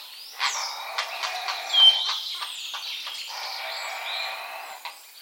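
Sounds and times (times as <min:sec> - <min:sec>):
common starling chatter: 0:00.3 - 0:02.2, 0:03.3 - 0:04.9.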